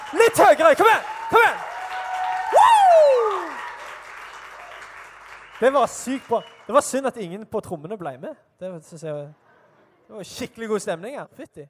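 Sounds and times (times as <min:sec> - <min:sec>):
audience applause: 0:00.0 - 0:06.7
speech: 0:00.1 - 0:01.6, 0:05.6 - 0:09.4, 0:10.1 - 0:11.6
loud voice whooping: 0:00.2 - 0:03.8.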